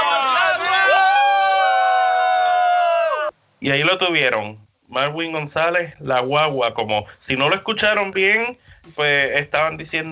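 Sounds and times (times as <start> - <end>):
team crowd cheering in celebration: 0.0 - 3.3
speech: 3.6 - 10.1.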